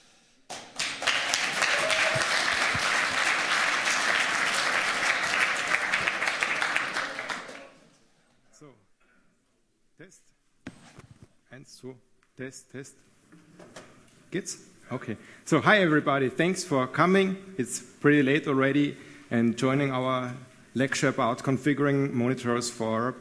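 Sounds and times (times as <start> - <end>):
audience applause: 0.6 - 7.8
speech: 11.8 - 13.1, 14.3 - 23.1.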